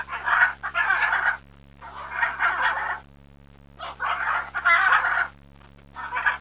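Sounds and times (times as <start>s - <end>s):
Puerto Rican parrot Amazona vittata vittata calling: 0.0s - 3.0s, 3.8s - 5.3s, 6.0s - 6.4s.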